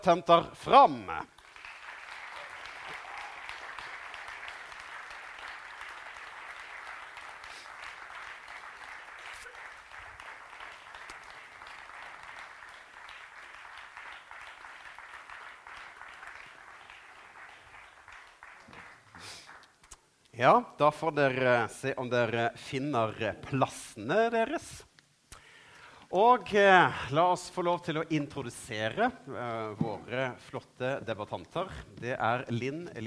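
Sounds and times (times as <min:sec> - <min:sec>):
speech: 0:00.0 - 0:01.4, 0:20.4 - 0:24.9, 0:26.1 - 0:33.0
audience applause welcoming debaters: 0:01.3 - 0:19.8.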